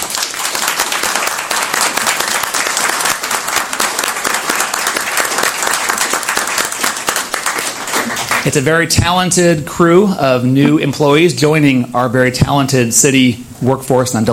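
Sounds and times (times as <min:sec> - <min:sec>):
round of applause: 0:00.0 - 0:08.6
speech: 0:08.4 - 0:14.3.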